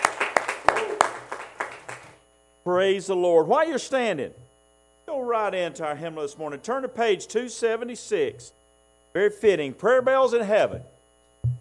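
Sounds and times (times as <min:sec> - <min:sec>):
church congregation rhythmic hand clapping: 0:00.0 - 0:02.2
speech: 0:02.6 - 0:04.4, 0:05.2 - 0:08.6, 0:09.2 - 0:10.9.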